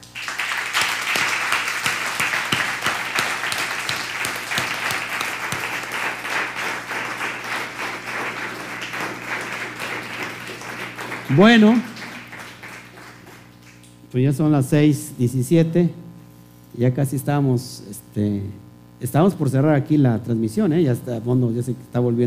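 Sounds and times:
audience applause: 0.0s - 13.9s
speech: 11.3s - 11.9s, 14.1s - 16.0s, 16.8s - 22.2s.

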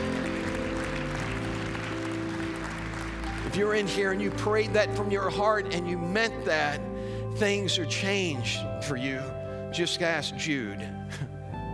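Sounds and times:
audience clapping steadily in praise: 0.0s - 5.1s
sustained low keyboard chords: 0.0s - 11.7s
speech: 3.5s - 11.3s.

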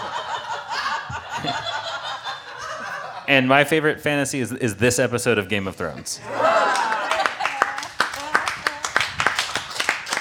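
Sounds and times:
laughter: 0.0s - 3.5s, 6.2s - 8.9s
speech: 1.4s - 1.8s, 3.3s - 6.5s
voices and whoops: 6.2s - 9.0s
audience clapping: 6.6s - 10.1s.

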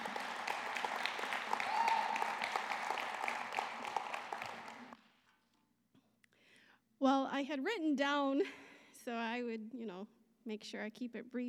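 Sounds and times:
audience applause welcoming a speaker: 0.0s - 5.0s
speech: 7.0s - 11.4s.

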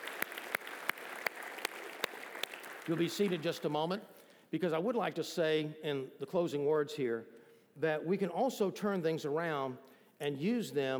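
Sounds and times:
audience applause: 0.0s - 3.5s
sharp rhythmic claps: 0.0s - 3.7s
speech: 2.9s - 10.9s.

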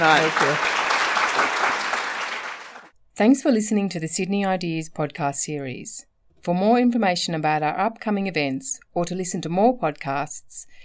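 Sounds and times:
speech: 0.0s - 0.8s, 3.2s - 10.8s
audience round of applause: 0.0s - 2.9s.

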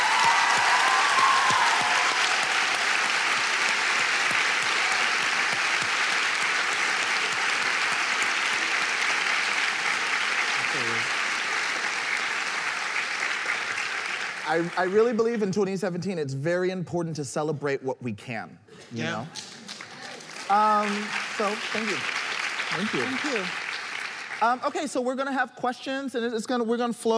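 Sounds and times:
large audience clapping: 0.0s - 15.8s, 19.3s - 24.7s
speech: 14.5s - 19.6s, 20.5s - 23.6s, 24.4s - 27.1s.

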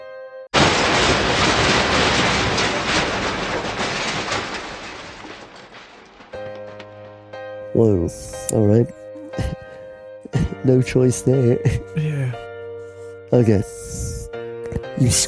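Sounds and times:
loud crash: 0.6s - 7.2s
rending ripping metal: 0.6s - 7.2s
speech: 7.8s - 9.0s, 10.6s - 12.1s, 13.3s - 13.8s, 15.0s - 15.2s.

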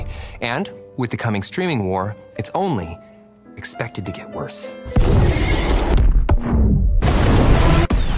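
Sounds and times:
speech: 0.4s - 6.0s
huge cinematic explosions: 4.9s - 8.1s.

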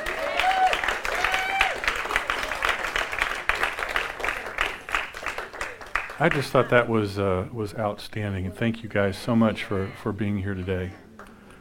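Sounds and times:
audience clapping: 0.0s - 6.9s
speech: 6.2s - 11.0s.

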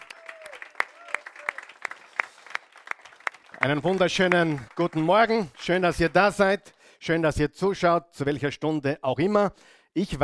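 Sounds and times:
audience applause: 0.0s - 6.3s
speech: 3.6s - 10.2s.

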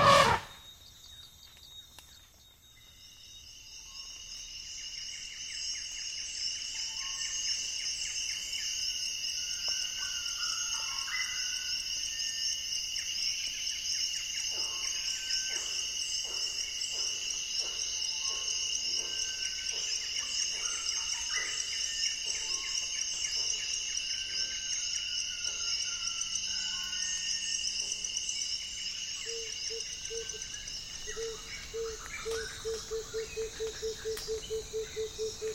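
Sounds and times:
dense insect chorus in Congo Basin rainforest: 0.0s - 35.5s.

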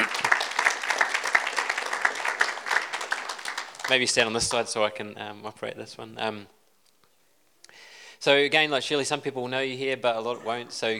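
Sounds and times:
round of applause: 0.0s - 4.4s
speech: 3.9s - 6.6s, 8.2s - 10.9s.

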